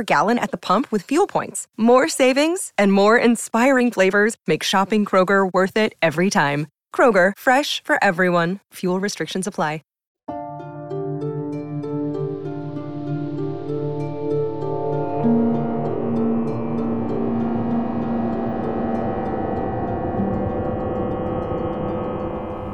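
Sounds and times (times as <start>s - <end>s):
speech: 0.0s - 9.9s
sci-fi tractor beam sound effect: 11.8s - 22.7s.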